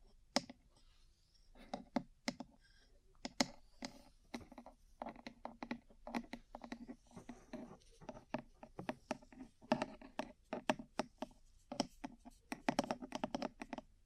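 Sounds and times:
ear cleaning crisp taps and clicks: 3.2 - 13.9.

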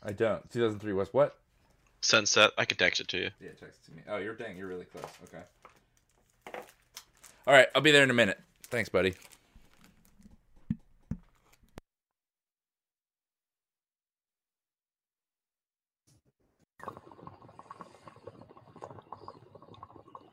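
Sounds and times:
speech: 0.0 - 1.4, 2.0 - 5.7, 7.4 - 9.3
water pipe bubbling: 16.8 - 20.3.

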